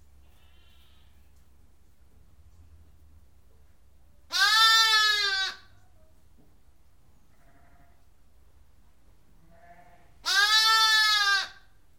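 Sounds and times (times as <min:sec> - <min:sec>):
lamb bleating: 0:00.2 - 0:01.2, 0:04.3 - 0:05.6, 0:07.4 - 0:08.0, 0:09.5 - 0:11.7.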